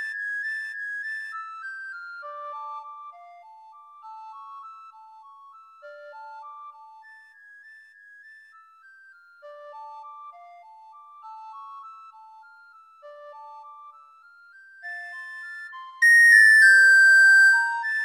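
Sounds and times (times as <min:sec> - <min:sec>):
recorder duet: 0:16.0 - 0:17.9.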